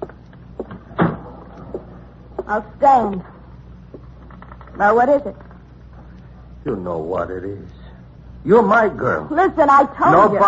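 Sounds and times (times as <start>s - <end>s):
door being shut: 0.9s - 1.4s
speech: 2.5s - 3.3s, 4.8s - 5.4s, 6.6s - 7.8s, 8.4s - 10.4s.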